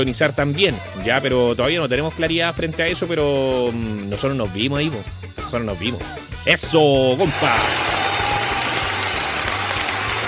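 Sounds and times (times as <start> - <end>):
speech: 0.0 - 8.0
applause: 7.3 - 10.2.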